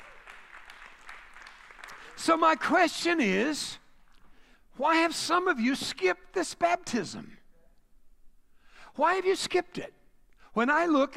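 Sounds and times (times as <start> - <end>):
audience hand clapping: 0.0 - 2.6
speech: 2.2 - 3.8, 4.8 - 7.4, 9.0 - 10.0, 10.6 - 11.1.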